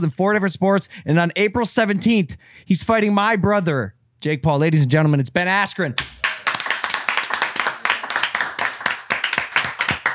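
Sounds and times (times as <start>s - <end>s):
speech: 0.0s - 6.2s
small group clapping in a studio: 6.0s - 10.1s.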